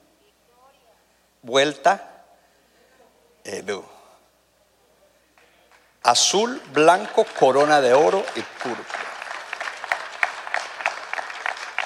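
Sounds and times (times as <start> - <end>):
speech: 1.4 - 2.1, 3.4 - 4.0, 6.0 - 9.0
audience applauding: 7.0 - 11.8.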